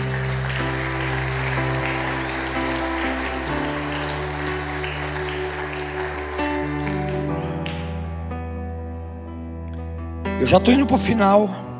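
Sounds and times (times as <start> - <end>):
audience applause: 0.0 - 8.3
speech: 10.4 - 11.6.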